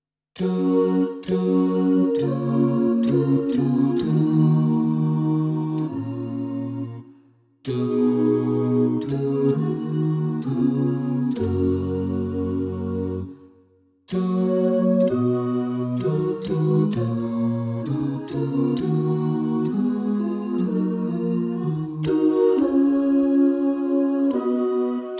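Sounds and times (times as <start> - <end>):
bass: 0.4 - 13.4, 14.1 - 25.1.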